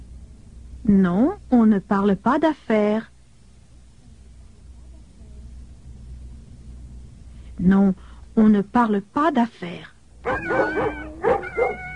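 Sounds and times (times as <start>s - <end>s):
speech: 0.8s - 3.1s, 7.6s - 11.9s
dog barking: 10.2s - 11.9s.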